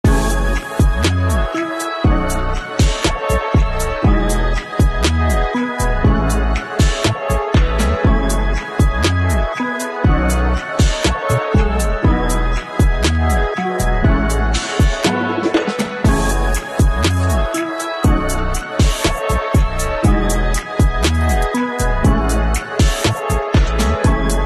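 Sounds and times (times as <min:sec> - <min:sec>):
beat music: 0:00.0 - 0:24.4.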